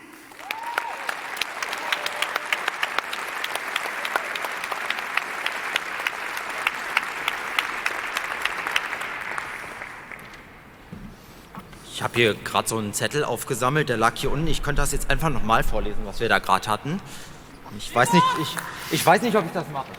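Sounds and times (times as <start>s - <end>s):
enthusiastic audience applause: 0.0s - 11.5s, 18.0s - 19.9s
speech: 12.0s - 19.9s.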